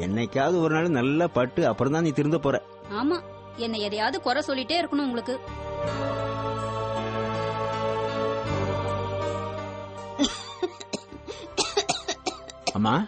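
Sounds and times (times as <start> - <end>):
speech: 0.0 - 6.2, 12.8 - 13.0
sustained musical drone: 3.0 - 11.6
mother coughing: 10.2 - 12.8.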